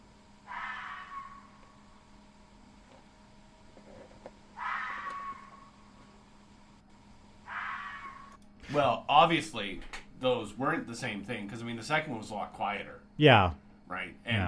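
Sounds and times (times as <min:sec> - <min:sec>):
fox calls: 0:00.4 - 0:01.9, 0:04.6 - 0:05.8, 0:07.4 - 0:08.4
speech: 0:08.8 - 0:14.4.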